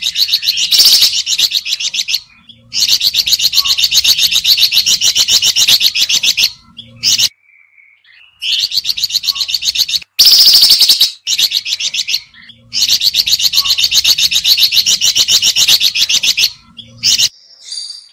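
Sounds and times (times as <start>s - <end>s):
sooty-headed bulbul calling: 0.0s - 18.1s.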